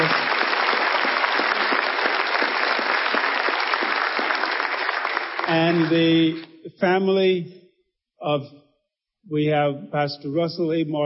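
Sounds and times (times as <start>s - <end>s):
large crowd applause: 0.0s - 6.5s
speech: 5.5s - 7.6s, 8.2s - 8.6s, 9.3s - 11.0s.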